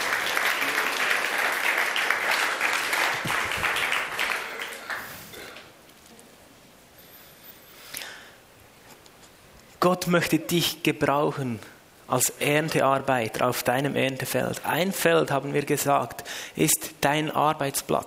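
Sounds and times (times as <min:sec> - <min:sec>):
audience applause: 0:00.0 - 0:05.3
speech: 0:09.9 - 0:18.0.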